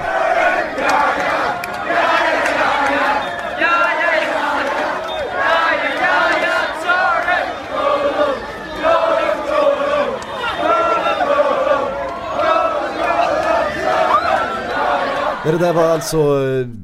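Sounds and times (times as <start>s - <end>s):
students singing spontaneous chant in street: 0.0s - 16.0s
speech: 15.5s - 16.8s.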